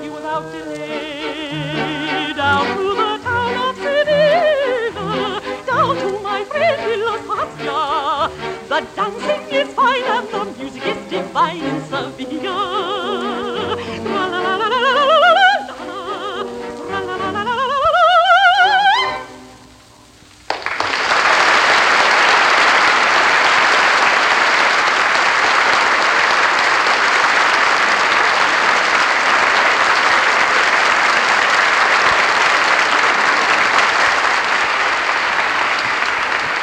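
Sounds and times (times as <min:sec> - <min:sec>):
soprano singing an opera aria: 0:00.0 - 0:19.6
audience applause after opera aria: 0:00.9 - 0:15.6, 0:20.4 - 0:36.6.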